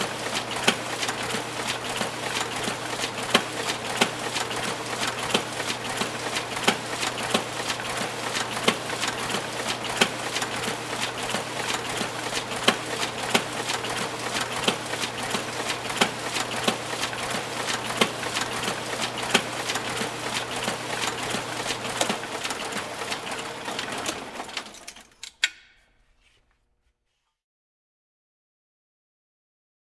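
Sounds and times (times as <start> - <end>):
heavy duty mixer grinder machine running: 0.0 - 24.8.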